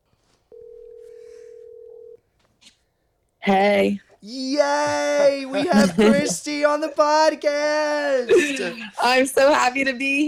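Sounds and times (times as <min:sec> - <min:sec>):
soft rustle: 0:00.0 - 0:02.8
electronic telephone tone while placing a call: 0:00.5 - 0:02.2
speech: 0:03.4 - 0:10.2
laughter: 0:04.4 - 0:07.4, 0:08.0 - 0:09.7.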